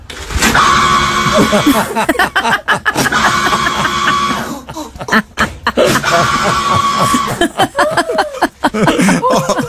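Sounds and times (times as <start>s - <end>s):
paper towel dispenser motor whining: 0.4s - 1.7s, 3.0s - 4.5s, 5.9s - 7.4s
people laughing loudly: 1.2s - 9.6s.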